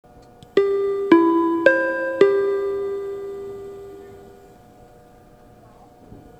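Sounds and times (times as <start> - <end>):
chime: 0.6 - 4.4.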